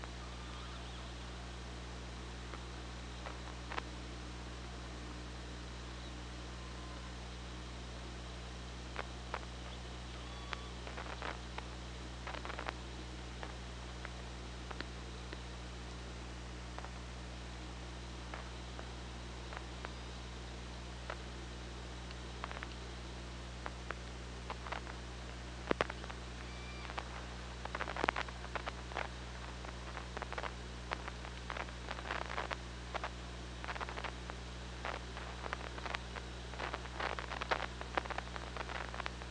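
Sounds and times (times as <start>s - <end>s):
low hum and hiss: 0.0s - 39.3s
killer whale tonal calls: 0.2s - 1.5s.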